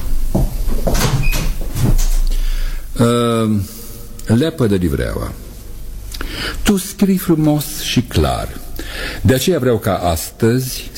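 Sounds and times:
door closing: 0:00.6 - 0:02.4
speech: 0:00.8 - 0:01.4, 0:03.0 - 0:05.4, 0:06.7 - 0:10.9.

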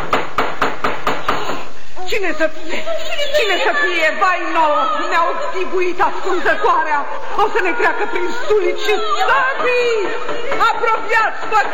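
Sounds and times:
knocking on a cave door: 0:00.0 - 0:01.6
speech: 0:02.1 - 0:11.7
laughter: 0:02.5 - 0:11.7.

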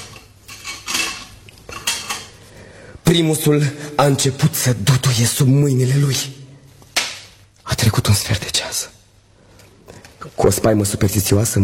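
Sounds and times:
metal surgical instruments clinking: 0:00.0 - 0:02.4
speech: 0:03.1 - 0:06.5, 0:07.8 - 0:08.9, 0:10.3 - 0:11.6.

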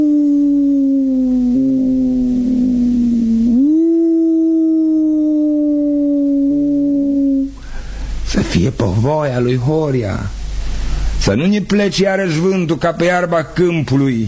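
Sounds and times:
tulnic alphorns being blown: 0:00.0 - 0:07.6
speech: 0:08.4 - 0:10.4, 0:11.2 - 0:14.2.

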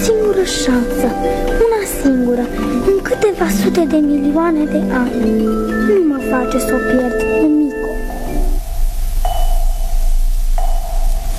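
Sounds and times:
speech: 0:00.5 - 0:07.8
fetal heart monitor electronic pings: 0:05.3 - 0:11.3
steady low hum: 0:07.9 - 0:11.3.

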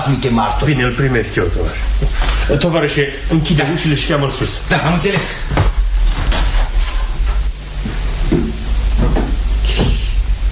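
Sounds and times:
speech: 0:00.1 - 0:05.7
footsteps on the stairs: 0:05.2 - 0:10.5.

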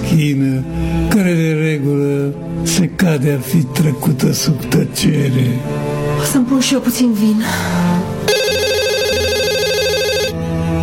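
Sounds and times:
speech: 0:00.1 - 0:08.4
phone ringing with a loud electronic ringtone: 0:08.3 - 0:10.4.

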